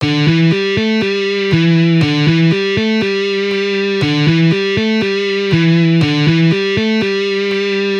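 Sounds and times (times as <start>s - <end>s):
easy guitar riffs: 0.0s - 7.9s.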